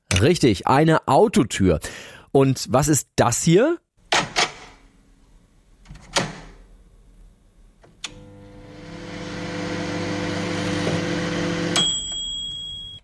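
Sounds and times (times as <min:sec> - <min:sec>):
speech: 0:00.2 - 0:03.8
microwave oven humming: 0:07.9 - 0:12.5.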